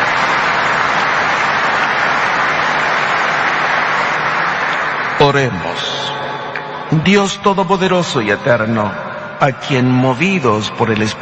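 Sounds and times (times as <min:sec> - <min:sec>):
audience applauding: 0:00.0 - 0:06.9
speech: 0:05.3 - 0:05.9, 0:06.9 - 0:11.1.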